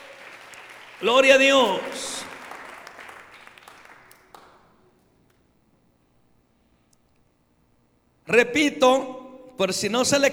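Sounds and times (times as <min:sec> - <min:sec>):
audience applause: 0:00.0 - 0:04.7
speech: 0:01.0 - 0:02.1, 0:08.3 - 0:10.3.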